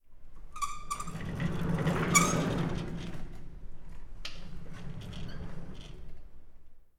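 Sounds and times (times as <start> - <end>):
machine on wheels being moved along rails: 0.8 - 6.2.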